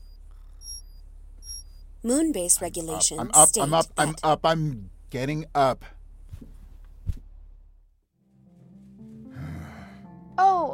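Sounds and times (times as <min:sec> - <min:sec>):
alarm clock electronic tone: 0:00.0 - 0:01.8
low constant hum: 0:00.0 - 0:08.0
speech: 0:02.0 - 0:06.0.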